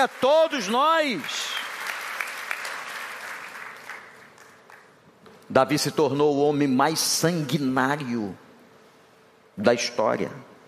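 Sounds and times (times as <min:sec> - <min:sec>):
speech: 0:00.0 - 0:01.6, 0:05.5 - 0:08.4, 0:09.6 - 0:10.5
audience applauding: 0:00.0 - 0:05.0.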